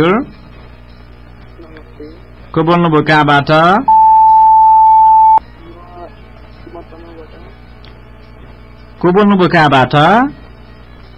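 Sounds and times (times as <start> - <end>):
speech: 0.0 - 0.4, 2.6 - 3.9, 9.0 - 10.4
telephone line tone after caller hung up: 3.9 - 5.4.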